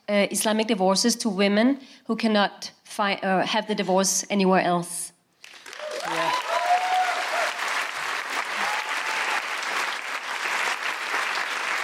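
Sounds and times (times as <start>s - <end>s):
speech: 0.1s - 5.1s
audience applause: 5.4s - 11.8s.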